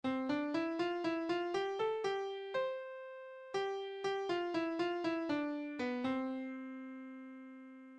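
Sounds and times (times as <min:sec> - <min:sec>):
syncopated rhythm: 0:00.0 - 0:02.9, 0:03.5 - 0:06.6.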